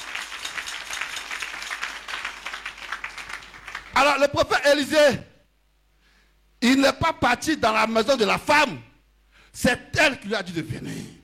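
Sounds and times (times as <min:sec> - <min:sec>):
church congregation applauding during a sermon: 0:00.0 - 0:04.3
speech: 0:04.0 - 0:05.3, 0:06.6 - 0:08.9, 0:09.5 - 0:11.2.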